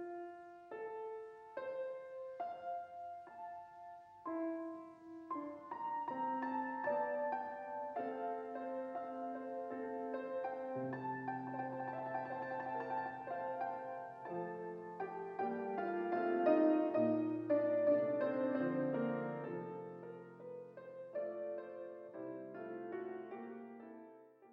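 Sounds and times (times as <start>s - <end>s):
harp piano: 0.0s - 24.5s.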